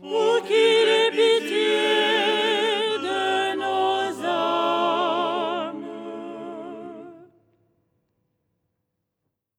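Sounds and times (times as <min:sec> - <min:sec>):
soprano singing: 0:00.0 - 0:07.3.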